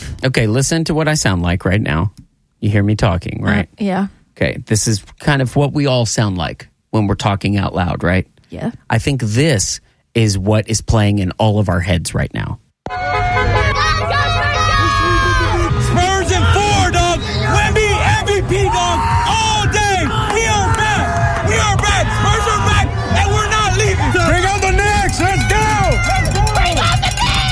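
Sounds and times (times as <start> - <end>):
speech: 0.2 - 13.0
Spurs fans cheering: 12.9 - 27.4.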